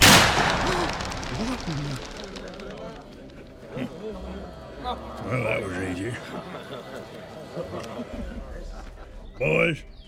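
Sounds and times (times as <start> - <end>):
gunshot as a man shoots himself in a drama: 0.0 - 3.2
laughter: 0.0 - 9.8
speech: 1.4 - 2.2, 3.8 - 10.0.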